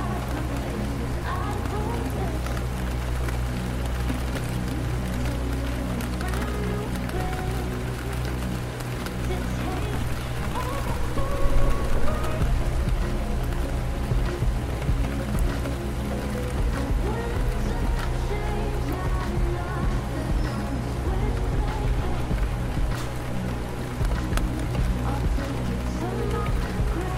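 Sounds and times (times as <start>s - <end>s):
gentle rain on floor-to-ceiling windows of VALORANT HQ common area: 0.0s - 27.1s
low hum: 0.0s - 27.1s.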